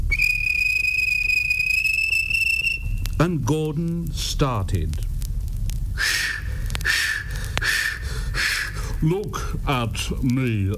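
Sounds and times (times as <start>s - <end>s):
railway guard blowing his whistle: 0.0s - 3.0s, 6.0s - 8.8s
speech: 3.2s - 5.1s, 9.0s - 10.7s.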